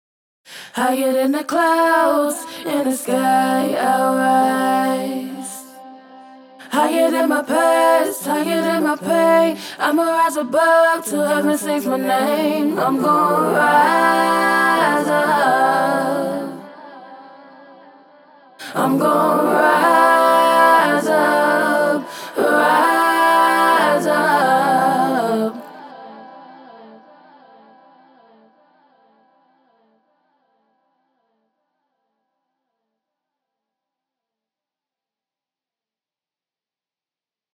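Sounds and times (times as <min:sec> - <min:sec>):
a cappella singing of a hook: 0:00.5 - 0:30.0.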